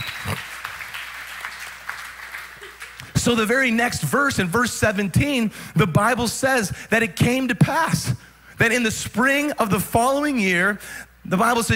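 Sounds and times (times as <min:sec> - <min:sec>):
audience applause: 0:00.0 - 0:03.2
speech: 0:03.2 - 0:11.7.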